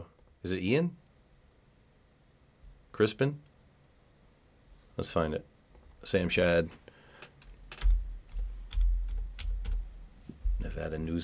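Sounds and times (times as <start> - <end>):
speech: 0.4 - 1.0, 3.0 - 3.5, 5.0 - 6.8, 10.8 - 11.2
typing on a computer keyboard: 7.4 - 9.8.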